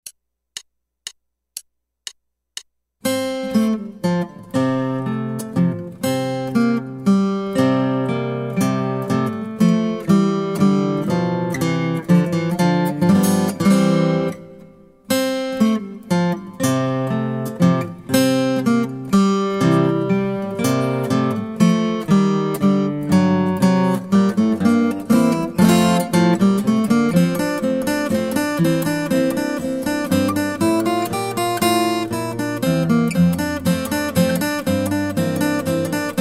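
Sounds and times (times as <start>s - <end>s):
guitar: 3.0s - 36.2s.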